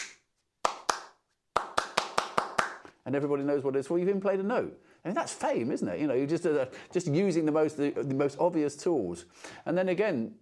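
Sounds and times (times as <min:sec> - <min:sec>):
clapping out a melody's rhythm: 0:00.0 - 0:03.0
speech: 0:03.1 - 0:10.3.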